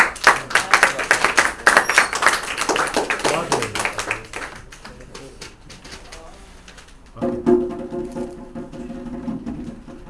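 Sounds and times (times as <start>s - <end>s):
small group clapping for a girl in a drumming class: 0.0s - 6.3s.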